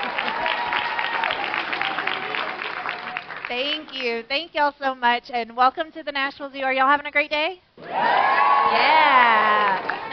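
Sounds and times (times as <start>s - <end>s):
audience applause: 0.0s - 3.9s, 7.9s - 10.1s
speech: 3.5s - 10.1s.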